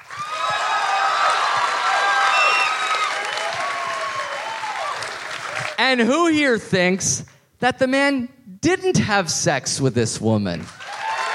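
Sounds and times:
audience applause: 0.0s - 5.8s, 10.8s - 11.3s
crowd cheering and whooping: 0.0s - 5.8s, 10.8s - 11.3s
speech: 5.9s - 10.8s.

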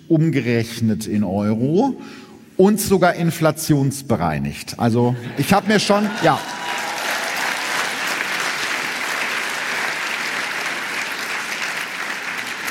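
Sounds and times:
speech: 0.1s - 6.7s
applause: 5.9s - 12.6s.

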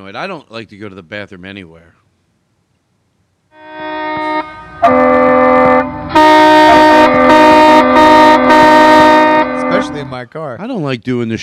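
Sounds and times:
speech: 0.0s - 2.0s, 9.8s - 11.4s
truck horns honking near highway: 3.5s - 10.2s.

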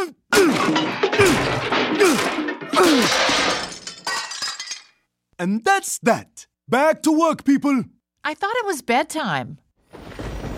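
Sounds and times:
hammer smashing a PCD device: 0.4s - 4.6s
speech: 5.4s - 10.0s.

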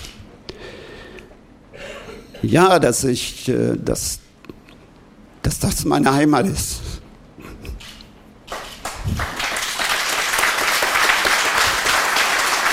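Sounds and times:
speech: 2.4s - 4.2s, 5.4s - 7.0s
applause at a press conference: 8.5s - 12.7s.

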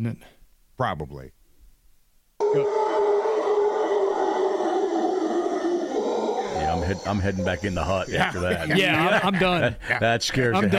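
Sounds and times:
speech: 0.0s - 1.4s, 2.5s - 2.9s, 6.6s - 10.7s
howler monkeys roaring: 2.4s - 9.1s
laughter: 2.4s - 10.7s.

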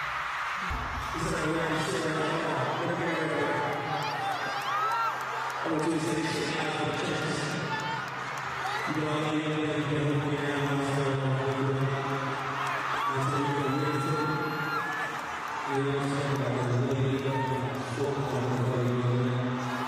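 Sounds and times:
large crowd roaring and screaming at a proposal: 0.0s - 19.8s
cheers and whoops: 3.3s - 5.7s, 7.6s - 9.0s, 11.8s - 18.0s.

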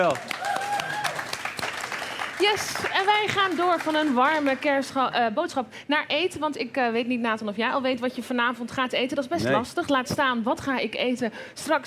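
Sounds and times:
speech: 0.0s - 0.4s, 2.4s - 11.8s
audience applause: 0.0s - 4.6s.

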